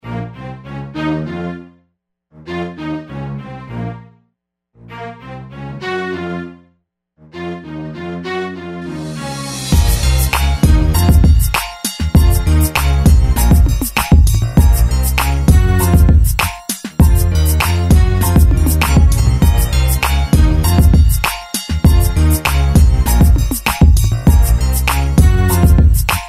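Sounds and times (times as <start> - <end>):
hip hop music: 9.1 - 26.2.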